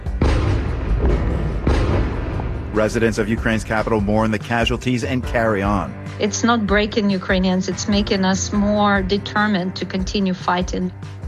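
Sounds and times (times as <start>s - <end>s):
Russian missile strike explosions on Kyiv: 0.2s - 3.0s
speech: 2.8s - 11.2s.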